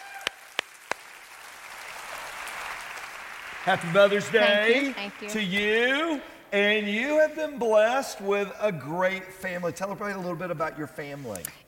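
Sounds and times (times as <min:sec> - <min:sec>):
audience applause: 0:00.0 - 0:06.2
speech: 0:03.6 - 0:11.6.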